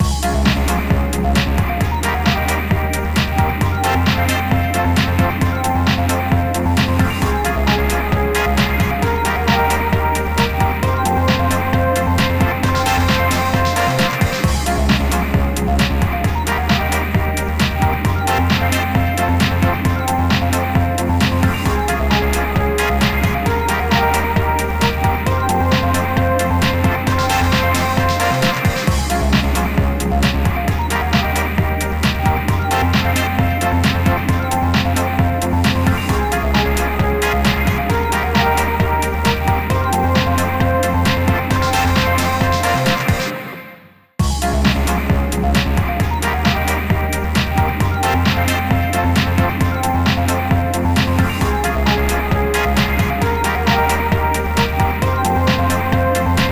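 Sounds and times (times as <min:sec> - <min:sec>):
goal theme music: 0:00.0 - 0:56.5.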